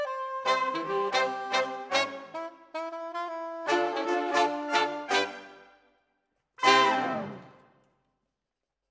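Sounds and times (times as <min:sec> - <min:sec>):
saxophone: 0:00.0 - 0:05.7, 0:06.6 - 0:07.6.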